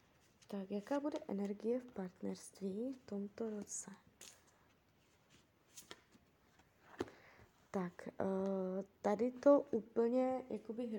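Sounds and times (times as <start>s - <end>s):
cards being shuffled: 0.2s - 2.1s, 2.8s - 7.2s
speech: 0.5s - 4.0s, 7.7s - 10.9s.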